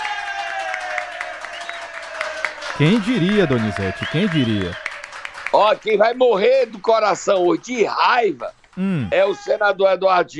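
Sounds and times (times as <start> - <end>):
audience applause for a senator: 0.0 - 8.5
laughter: 2.8 - 4.8
speech: 2.8 - 4.8, 5.5 - 10.3.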